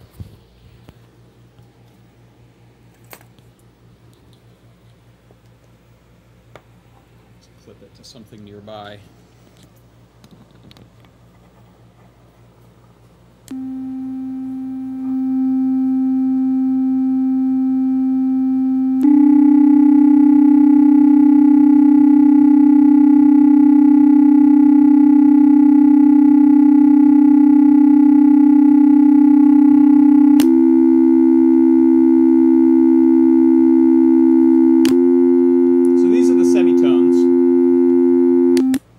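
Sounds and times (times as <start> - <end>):
speech: 7.7 - 9.2
low synthesizer sine-wave tone: 13.5 - 38.8.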